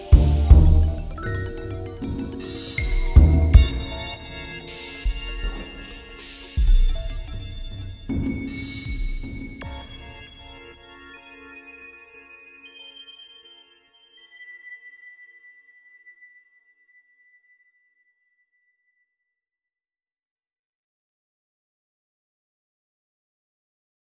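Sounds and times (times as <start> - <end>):
strange pizzicato strings: 0.0 - 7.4.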